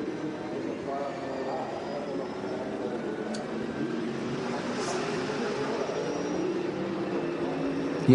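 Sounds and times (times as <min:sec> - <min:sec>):
onboard racing car engine at reduced revs: 0:00.0 - 0:08.1.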